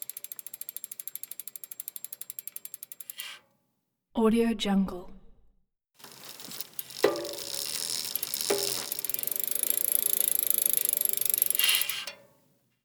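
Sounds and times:
bicycle pedal change gears: 0:00.0 - 0:03.4, 0:06.0 - 0:12.3.

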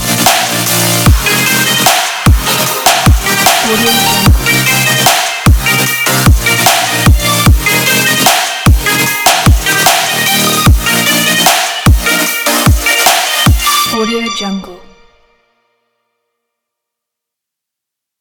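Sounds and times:
future bass music: 0:00.0 - 0:14.3.

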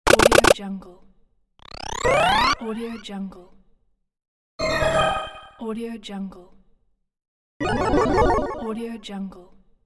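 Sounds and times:
game sound effects: 0:00.1 - 0:00.6, 0:01.6 - 0:02.7, 0:07.6 - 0:08.7.

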